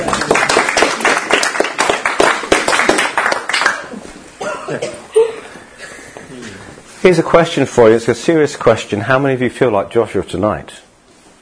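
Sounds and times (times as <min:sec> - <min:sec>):
crowd clapping: 0:00.0 - 0:04.0
speech: 0:07.0 - 0:10.8.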